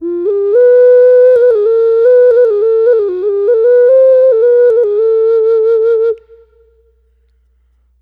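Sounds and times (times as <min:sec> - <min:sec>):
gourd ocarina: 0:00.0 - 0:06.9.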